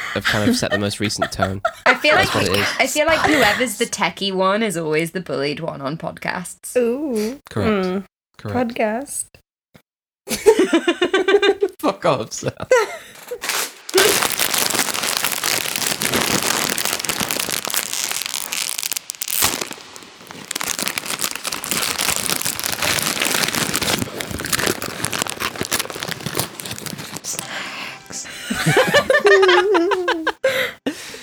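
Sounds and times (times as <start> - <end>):
laughter: 0.0 - 4.0, 10.3 - 14.3, 28.0 - 31.1
speech: 0.2 - 9.4, 10.3 - 14.1, 28.6 - 29.0
packet of ready salted Walkers Baked crisps rattled, opened and crunched: 13.3 - 27.6.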